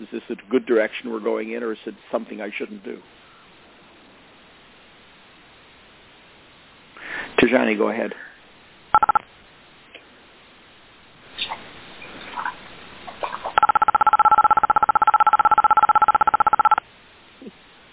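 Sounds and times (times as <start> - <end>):
speech: 0.1 - 3.3, 7.5 - 8.3
telephone keypad beeps on a conference line: 9.0 - 9.2, 13.6 - 16.8.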